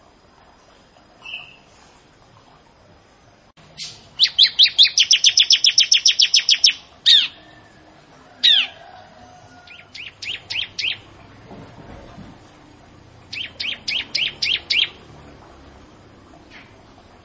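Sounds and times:
bar-winged prinia singing: 3.6s - 11.5s, 12.5s - 17.2s.

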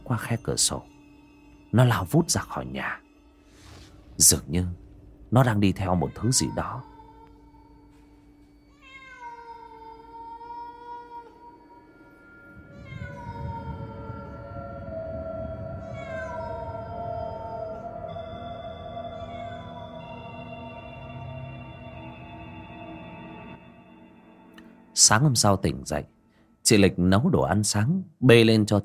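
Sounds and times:
speech: 0.1s - 1.0s, 1.7s - 3.0s, 4.2s - 6.9s, 25.0s - 28.8s
cat meowing: 5.7s - 7.4s, 8.7s - 11.6s, 12.6s - 20.5s.

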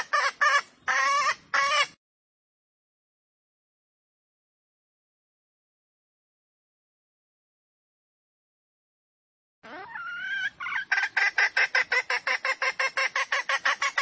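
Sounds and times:
female junglefowl squawking lure call: 0.0s - 2.0s, 9.6s - 13.9s.

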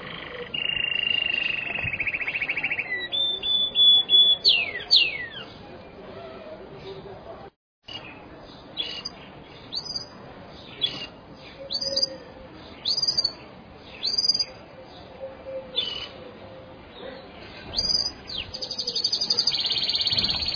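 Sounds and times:
bird chirping and trilling: 0.0s - 5.6s, 8.8s - 12.2s, 12.8s - 14.6s, 17.7s - 20.5s.

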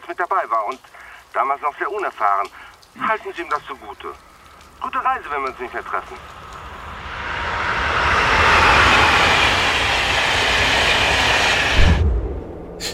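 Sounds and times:
speech: 0.1s - 6.4s
train running through a tunnel under the sea: 4.8s - 12.9s.

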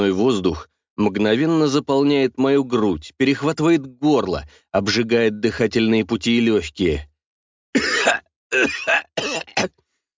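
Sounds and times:
speech: 0.0s - 7.1s, 7.7s - 9.8s
harsh violent coughing fit after breathing icy air: 7.8s - 9.8s.

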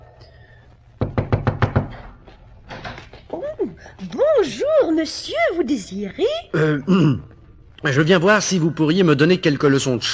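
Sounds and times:
knocking on a door: 1.0s - 2.2s
speech: 3.6s - 10.1s.

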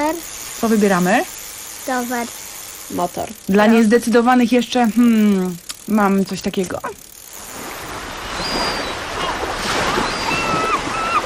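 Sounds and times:
speech: 0.2s - 7.1s
ship at sea: 7.4s - 11.2s.

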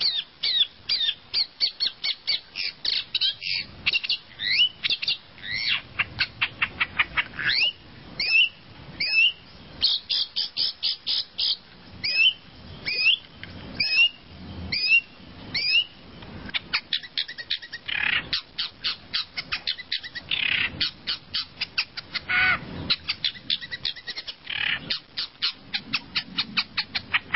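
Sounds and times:
bird calling: 0.0s - 27.3s.

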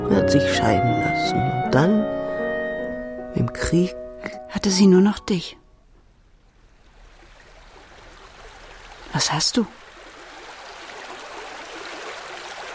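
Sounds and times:
speech: 0.1s - 2.2s, 3.4s - 5.6s, 9.1s - 9.8s
river water flowing: 6.2s - 12.7s.

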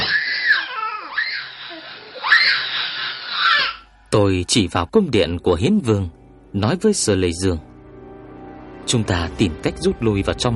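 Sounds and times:
wailing and screaming from inside a cave: 0.0s - 3.8s
sobbing cries: 0.0s - 3.9s
speech: 4.1s - 7.7s, 8.9s - 10.5s.

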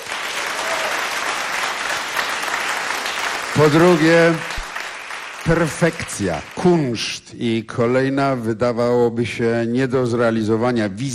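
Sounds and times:
concert audience applauding in a hall: 0.0s - 7.0s
speech: 3.6s - 4.5s, 5.4s - 11.1s.

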